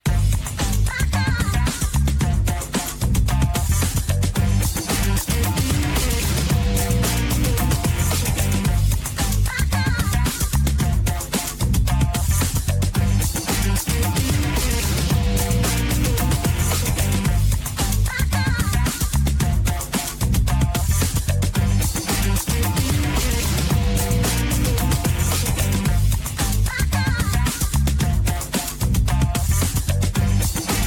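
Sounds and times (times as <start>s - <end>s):
funk music: 0.0s - 30.8s.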